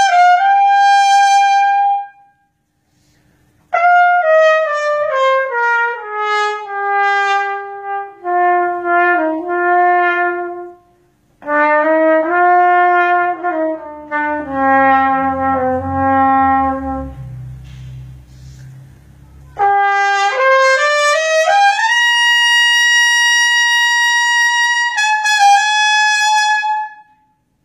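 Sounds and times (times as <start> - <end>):
trumpet: 0.0 - 2.7, 3.6 - 17.8, 19.5 - 27.5.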